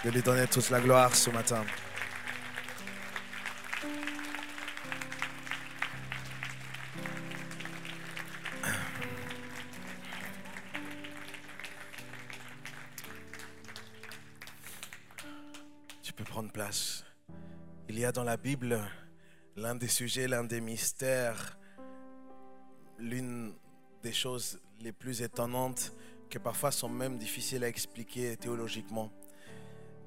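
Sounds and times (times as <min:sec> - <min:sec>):
speech: 0:00.0 - 0:02.0, 0:16.6 - 0:17.0, 0:18.0 - 0:19.0, 0:19.6 - 0:21.6, 0:23.0 - 0:29.6
audience applauding: 0:00.0 - 0:16.4.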